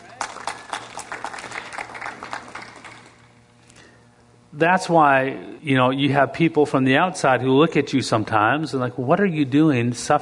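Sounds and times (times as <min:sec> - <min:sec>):
audience applause: 0:00.0 - 0:03.3
speech: 0:04.6 - 0:10.2.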